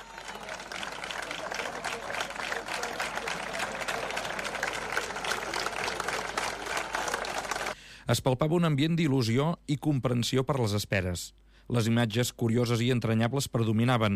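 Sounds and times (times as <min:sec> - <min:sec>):
crowd applauding police officers: 0:00.0 - 0:07.8
speech: 0:08.1 - 0:14.1.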